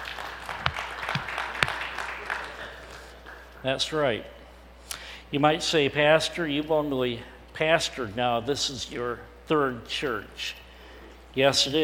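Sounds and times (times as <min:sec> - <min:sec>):
audience applauding: 0:00.0 - 0:03.5
speech: 0:03.6 - 0:04.4, 0:05.3 - 0:10.6, 0:11.4 - 0:11.8.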